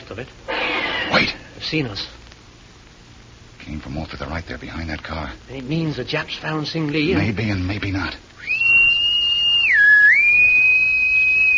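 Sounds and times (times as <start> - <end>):
speech: 0.1 - 2.2, 3.7 - 8.8
person whistling a signal call: 8.4 - 11.5.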